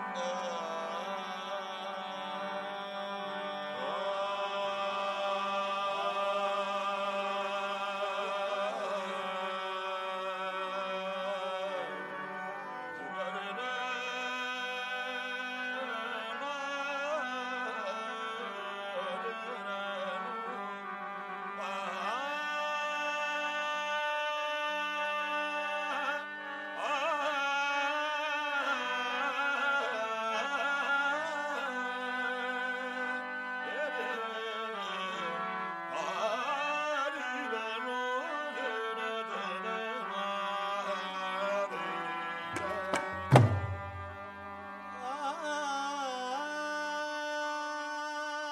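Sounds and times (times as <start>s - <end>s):
Sufi devotional singing: 0.1s - 48.4s.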